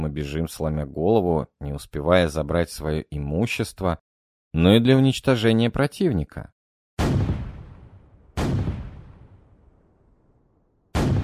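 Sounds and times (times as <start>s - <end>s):
speech: 0.0s - 7.1s
Turkish artillery cannon fire: 7.0s - 10.3s, 10.9s - 11.2s.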